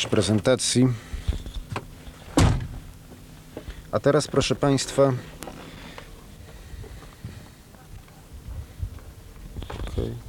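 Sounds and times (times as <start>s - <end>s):
speech: 0.0s - 1.2s, 3.9s - 5.4s
car door slamming shut as passengers exit: 1.7s - 2.8s.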